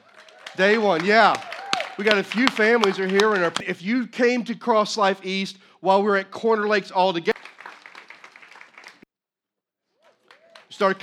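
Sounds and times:
audience applause at a church campus's ten-year anniversary gathering: 0.0 - 3.6, 7.3 - 9.0, 10.0 - 11.0
speech: 0.6 - 7.3, 10.8 - 11.0.

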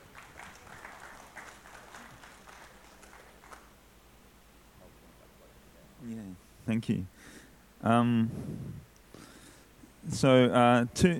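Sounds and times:
audience applause welcoming a speaker at a Christian kinship sharing event: 0.0 - 3.7
speech: 6.1 - 8.9, 10.0 - 11.1.

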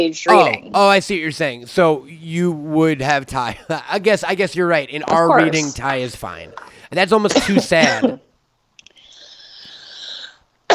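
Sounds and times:
speech: 0.0 - 8.3
weed cough: 7.3 - 8.3.

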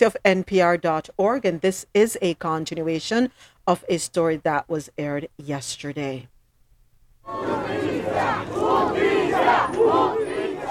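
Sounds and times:
speech: 0.0 - 6.3, 7.2 - 10.3
protesters in Mexico chanting for justice: 7.3 - 10.6.

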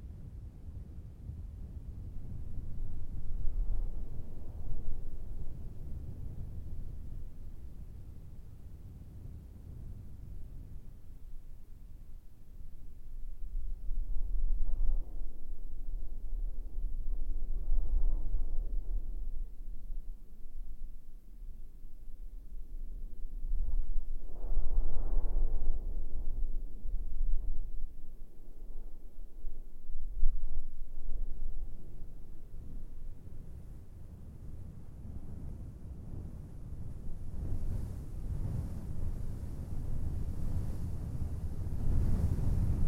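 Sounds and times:
low rumbling wind gusts over sand dunes in the Empty Quarter: 0.0 - 42.8.

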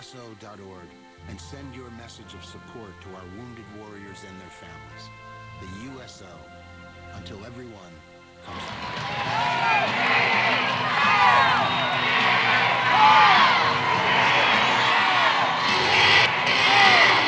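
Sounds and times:
speech: 0.1 - 11.0
crowd cheering at a high school basketball game in a gym: 8.4 - 17.2.

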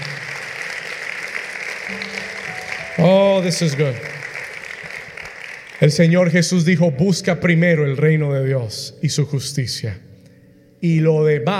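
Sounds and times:
audience applause: 0.0 - 6.4
speech: 3.0 - 4.2, 5.8 - 10.1, 10.8 - 11.5.

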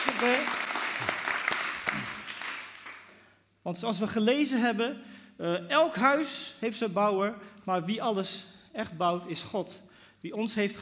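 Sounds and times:
audience applause: 0.0 - 3.2
speech: 0.2 - 0.6, 3.6 - 10.7.

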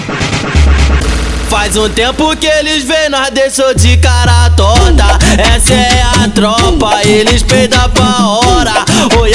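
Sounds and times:
gunfire burst: 0.2 - 3.1
speech: 1.7 - 9.3.

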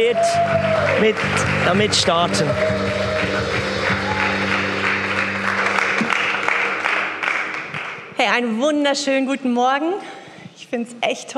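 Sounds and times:
speech: 0.0 - 3.6, 8.2 - 10.1, 10.7 - 11.3
audience applause: 0.0 - 8.2.

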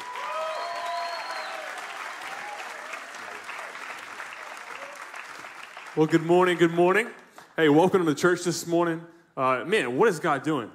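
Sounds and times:
church congregation applauding a pastor: 0.0 - 7.6
speech: 6.0 - 10.7.

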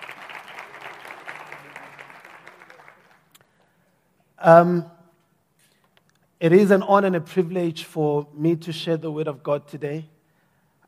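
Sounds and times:
audience applause: 0.0 - 3.4
speech: 4.4 - 4.9, 6.4 - 10.2.

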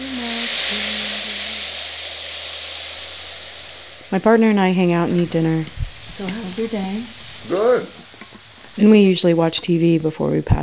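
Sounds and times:
ocean waves sound for baby's sleep: 0.0 - 8.7
speech: 4.1 - 8.1, 8.8 - 10.6.

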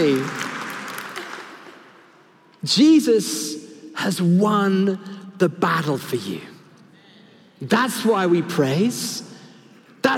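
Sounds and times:
audience clapping: 0.0 - 2.2
speech: 2.6 - 6.5, 7.6 - 9.3.

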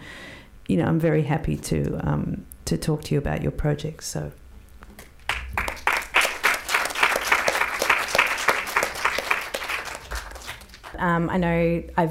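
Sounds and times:
speech: 0.7 - 4.4, 11.0 - 12.0
audience applause: 5.2 - 11.0.

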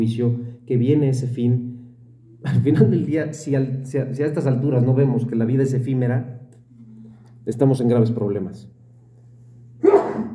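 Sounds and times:
speech: 0.0 - 1.7, 2.4 - 6.4, 7.4 - 8.8
low steady hum: 0.0 - 10.3
sneeze: 9.8 - 10.3.

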